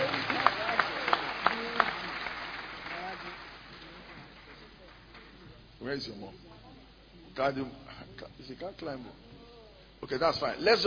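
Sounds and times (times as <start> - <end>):
audience clapping: 0.0 - 5.7
speech: 5.9 - 6.5, 7.4 - 9.2, 10.0 - 10.8.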